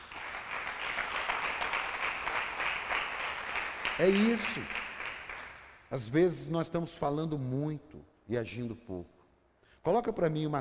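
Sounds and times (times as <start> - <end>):
audience applause: 0.0 - 5.7
speech: 4.0 - 4.8, 5.9 - 9.2, 9.8 - 10.5.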